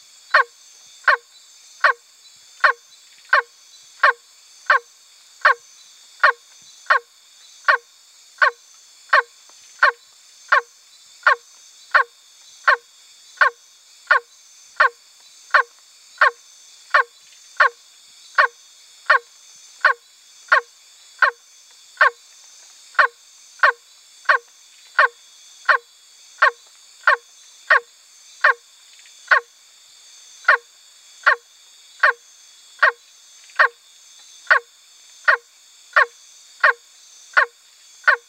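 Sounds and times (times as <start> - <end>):
continuous shrill insect background: 0.0 - 38.2
milk frog honking croaks: 2.6 - 4.8, 8.4 - 12.1, 13.4 - 17.8, 19.8 - 21.4, 23.0 - 24.4, 25.0 - 25.8, 26.4 - 28.6, 29.3 - 29.5, 31.2 - 31.4, 32.0 - 32.2, 32.8 - 33.0, 33.6 - 33.8, 36.0 - 36.8, 37.4 - 38.2.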